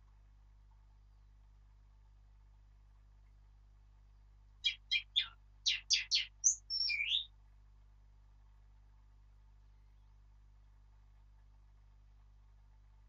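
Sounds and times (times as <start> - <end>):
Sylvia atricapilla warbling high notes: 4.6 - 7.3.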